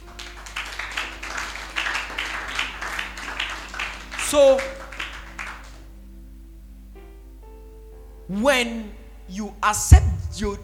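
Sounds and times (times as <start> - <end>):
audience clapping: 0.0 - 5.9
speech: 4.3 - 4.8, 8.3 - 10.6.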